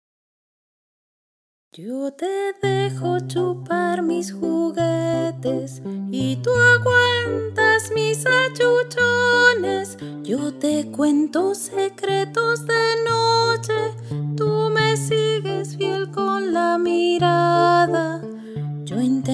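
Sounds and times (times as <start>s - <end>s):
piano: 1.8s - 19.3s.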